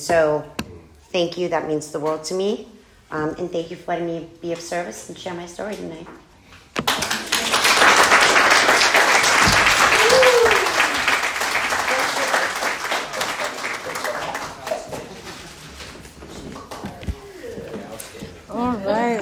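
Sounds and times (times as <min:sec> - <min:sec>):
speech: 0:00.0 - 0:06.2
audience applause: 0:06.9 - 0:14.8.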